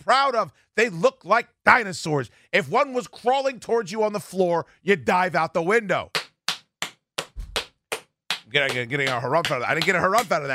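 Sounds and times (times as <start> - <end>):
speech: 0.1 - 6.2, 8.5 - 10.5
belly slaps: 6.2 - 8.5.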